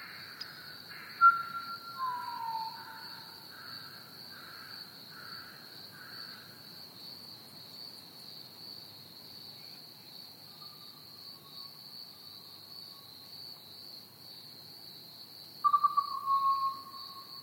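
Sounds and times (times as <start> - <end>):
Pied Butcherbird song: 0.0 - 3.4, 15.6 - 17.4.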